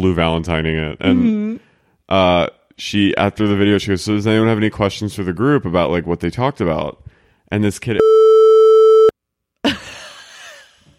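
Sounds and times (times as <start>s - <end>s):
speech: 0.0s - 8.4s
electronic censor bleep tone: 8.0s - 9.1s.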